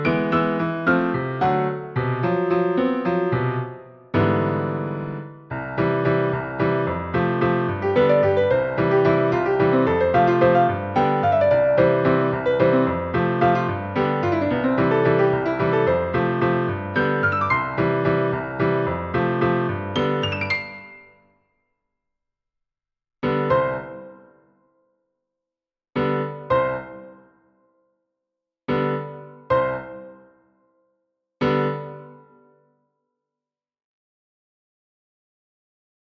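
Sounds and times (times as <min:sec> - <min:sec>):
solo piano: 0:00.0 - 0:21.2, 0:23.2 - 0:24.4, 0:26.0 - 0:27.3, 0:28.7 - 0:30.4, 0:31.4 - 0:32.6.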